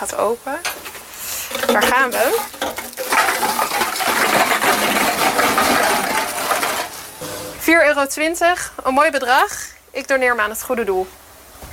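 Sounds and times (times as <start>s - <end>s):
speech: 0.0s - 0.9s, 1.5s - 5.0s, 7.7s - 11.2s
bulk deposit-return machine crushing deposit cans and plastic bottles: 1.5s - 7.5s.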